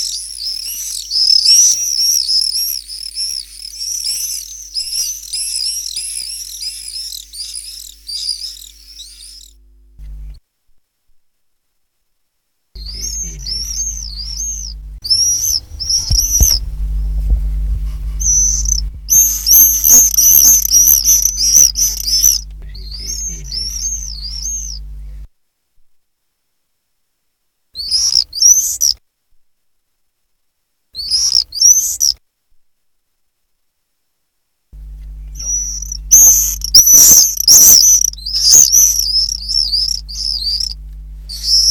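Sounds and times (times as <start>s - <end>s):
common swifts screaming: 0.0s - 9.6s, 12.8s - 17.3s, 18.0s - 25.2s, 27.8s - 29.0s, 31.0s - 32.2s, 35.2s - 41.7s
low hum: 0.2s - 10.4s, 12.8s - 25.3s, 34.8s - 41.7s
thumping noise: 13.6s - 22.7s.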